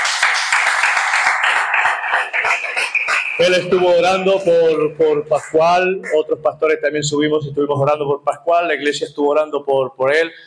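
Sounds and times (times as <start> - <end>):
audience applause: 0.0 - 3.9
speech: 3.4 - 10.4.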